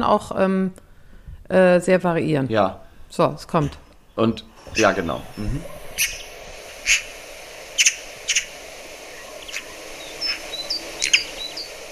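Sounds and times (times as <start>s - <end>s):
speech: 0.0s - 0.8s, 1.5s - 6.2s, 6.8s - 7.1s
smaller birds chirping high-pitched: 3.9s - 11.9s
corvid harsh rasping calls: 4.5s - 11.9s.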